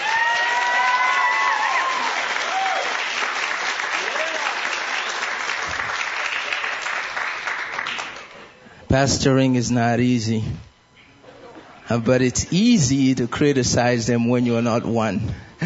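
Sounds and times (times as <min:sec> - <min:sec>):
high whoops: 0:00.0 - 0:03.1, 0:04.0 - 0:04.8
audience applauding for pastors at a church gathering: 0:00.0 - 0:08.6
speech: 0:08.9 - 0:10.7, 0:11.9 - 0:15.6.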